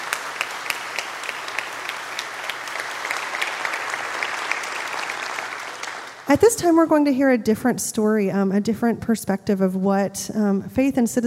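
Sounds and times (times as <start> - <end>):
audience applause: 0.0 - 6.4
speech: 6.3 - 11.2.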